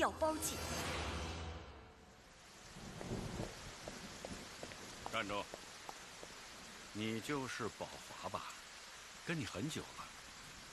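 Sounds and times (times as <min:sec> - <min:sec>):
speech: 0:00.0 - 0:00.8, 0:05.2 - 0:05.6, 0:06.9 - 0:08.6, 0:09.3 - 0:10.2
steady rain falling outside: 0:00.0 - 0:10.7
low rumble of thunder: 0:02.6 - 0:05.2.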